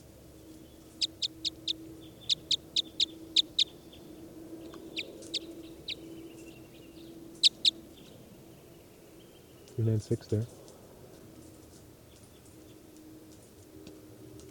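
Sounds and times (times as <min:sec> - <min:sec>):
bird call notes: 0:00.6 - 0:08.2
speech: 0:09.8 - 0:10.6.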